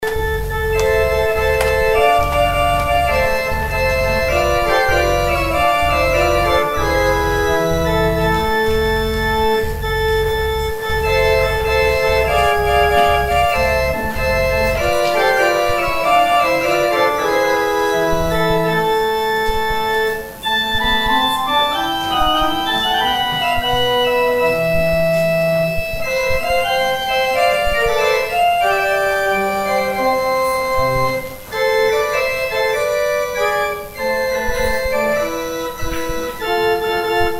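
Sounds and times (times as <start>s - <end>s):
organ interlude: 0.0s - 37.3s.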